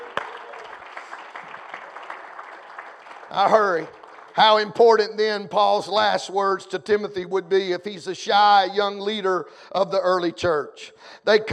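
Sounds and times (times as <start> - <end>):
audience clapping hands: 0.0 - 6.0
speech: 3.3 - 11.5.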